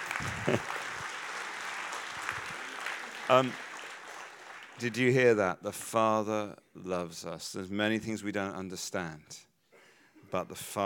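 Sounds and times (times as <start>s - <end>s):
audience applause: 0.0s - 4.9s
speech: 0.2s - 0.8s, 3.3s - 3.7s, 4.8s - 9.5s, 10.3s - 10.8s.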